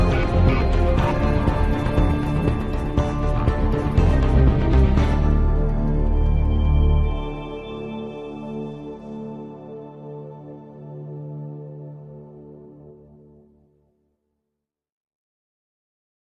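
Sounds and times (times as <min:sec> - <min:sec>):
tense music loop: 0:00.0 - 0:12.6.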